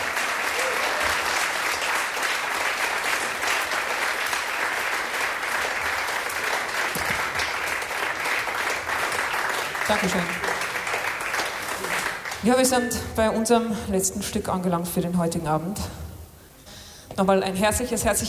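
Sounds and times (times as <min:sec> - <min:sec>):
audience applause: 0:00.0 - 0:12.5
speech: 0:09.9 - 0:10.5, 0:12.4 - 0:16.0, 0:17.2 - 0:18.2.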